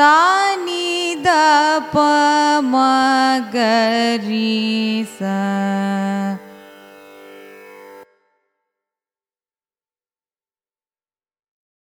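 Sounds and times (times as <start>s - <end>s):
Carnatic music raga ascending and descending scale: 0.0s - 8.6s.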